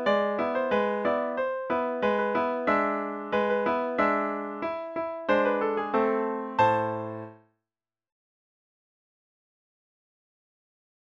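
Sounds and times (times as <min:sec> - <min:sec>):
piano melody: 0:00.0 - 0:07.4.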